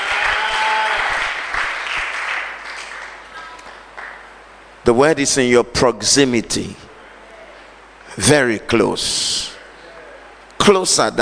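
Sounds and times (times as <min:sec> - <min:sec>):
audience clapping: 0:00.0 - 0:04.3
speech: 0:04.9 - 0:06.8, 0:08.2 - 0:09.5, 0:10.6 - 0:11.1.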